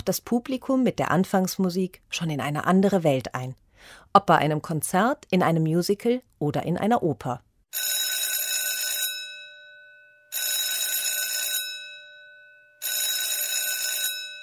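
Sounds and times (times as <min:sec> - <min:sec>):
speech: 0:00.0 - 0:08.0
theatre electric bell ringing: 0:07.8 - 0:14.4.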